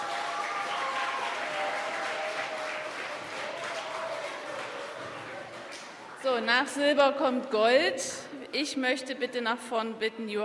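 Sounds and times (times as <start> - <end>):
audience applause: 0.0 - 6.2
speech: 6.2 - 10.4.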